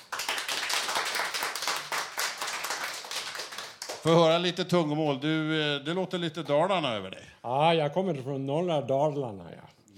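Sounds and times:
applause: 0.0s - 4.3s
speech: 4.0s - 9.7s.

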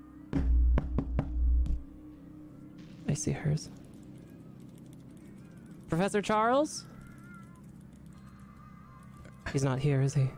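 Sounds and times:
low electronic hum: 0.0s - 8.9s
knocking on a door in a video game: 0.4s - 1.8s
speech: 3.1s - 3.8s, 5.9s - 6.9s, 9.5s - 10.3s.

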